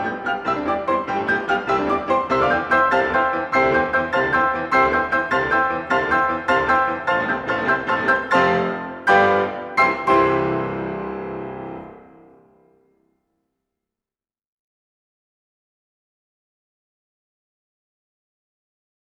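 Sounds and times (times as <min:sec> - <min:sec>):
furiant for piano four hands: 0:00.0 - 0:13.0.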